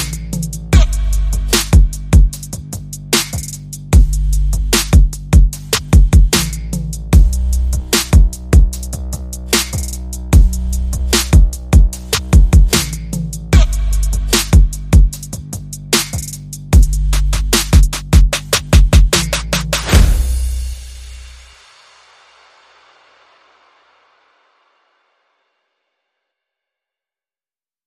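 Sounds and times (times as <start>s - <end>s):
bass: 0.0s - 21.7s
drums: 0.0s - 24.7s.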